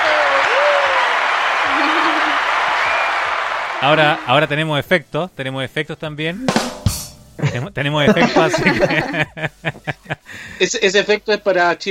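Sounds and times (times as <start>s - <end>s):
group welcome applause: 0.0s - 4.5s
laughter: 1.6s - 2.7s, 7.4s - 10.5s
speech: 3.8s - 11.8s.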